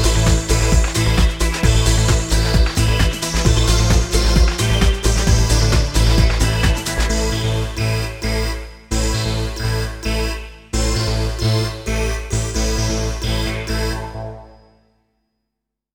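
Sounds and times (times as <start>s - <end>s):
extreme poppy synth lead: 0.0s - 14.8s.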